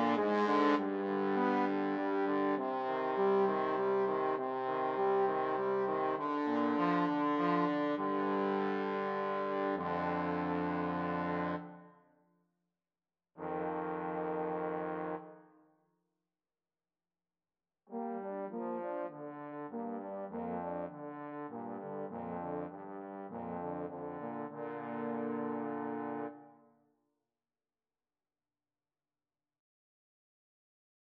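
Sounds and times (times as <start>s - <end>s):
trombone trio: 0.0s - 11.6s, 13.4s - 15.2s, 18.0s - 26.4s.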